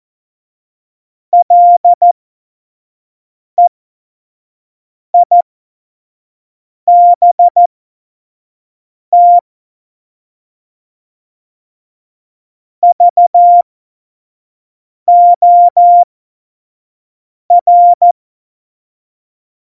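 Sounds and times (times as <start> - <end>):
morse code CW: 1.4 - 2.0, 6.9 - 7.7, 9.1 - 9.4, 12.8 - 13.6, 15.1 - 16.0, 17.5 - 18.0.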